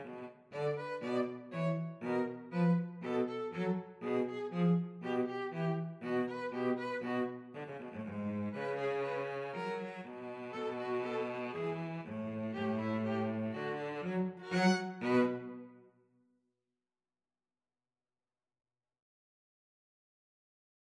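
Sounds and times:
violin and cello duet: 0:00.0 - 0:15.8.

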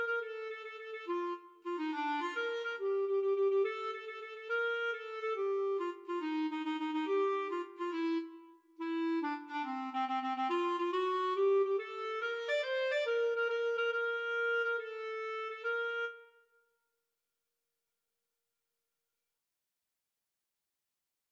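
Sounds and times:
clarinet duet: 0:00.0 - 0:16.4.

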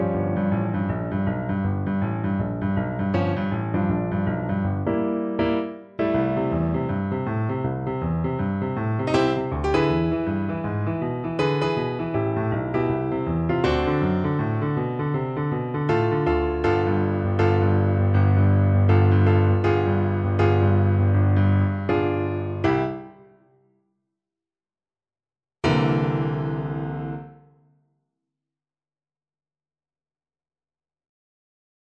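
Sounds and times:
jazzy birthday piano duet: 0:00.0 - 0:23.4, 0:25.6 - 0:27.3.

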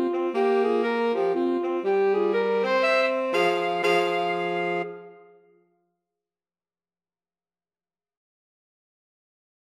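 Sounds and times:
two alto saxophones: 0:00.0 - 0:05.6.

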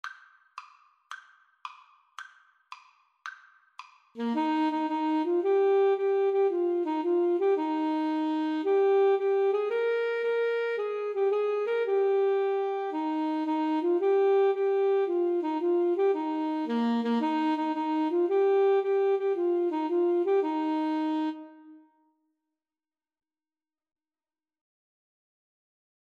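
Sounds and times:
saxophone playing a nursery rhyme: 0:04.2 - 0:22.0.

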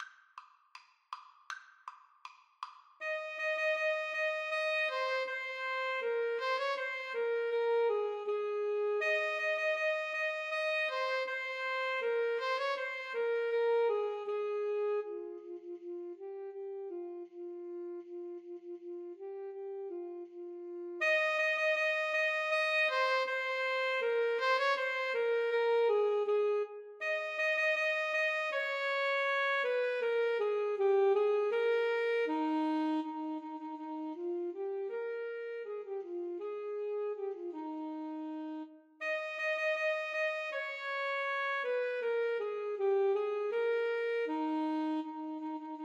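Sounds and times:
alto saxophone duet: 0:03.0 - 0:45.8.

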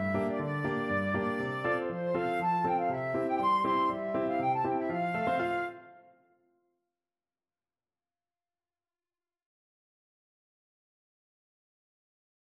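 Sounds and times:
flute playing a storpolska: 0:00.0 - 0:06.3.

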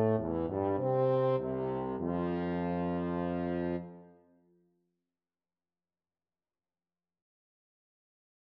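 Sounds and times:
flexible mixed ensemble of three players: 0:00.0 - 0:04.0.

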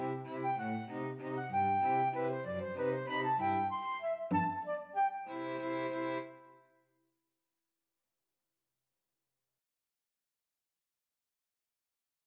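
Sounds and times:
cello: 0:00.0 - 0:06.6
flute: 0:00.0 - 0:06.6
violin: 0:00.0 - 0:06.6.

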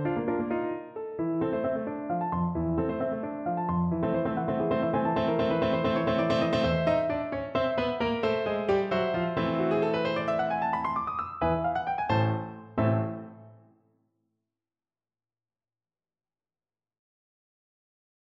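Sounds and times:
piano piece: 0:00.0 - 0:13.8.

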